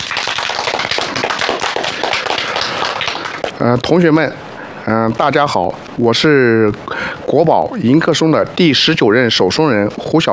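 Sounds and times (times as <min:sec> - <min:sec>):
audience applause welcoming a speaker: 0:00.0 - 0:03.6
speech: 0:03.6 - 0:10.3.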